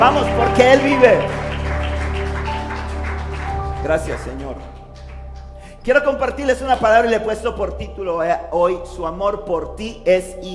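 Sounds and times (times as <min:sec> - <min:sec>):
speech: 0:00.0 - 0:01.4, 0:03.8 - 0:04.7, 0:05.8 - 0:10.5
audience applause: 0:00.0 - 0:05.8.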